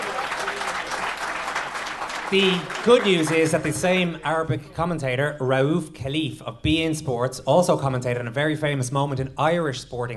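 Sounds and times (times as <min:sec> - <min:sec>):
audience applause: 0:00.0 - 0:04.1
speech: 0:02.3 - 0:10.1.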